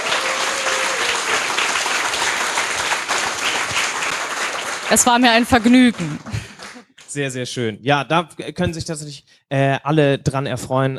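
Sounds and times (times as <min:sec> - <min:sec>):
audience applause: 0:00.0 - 0:06.8
speech: 0:04.9 - 0:06.3, 0:07.1 - 0:10.9.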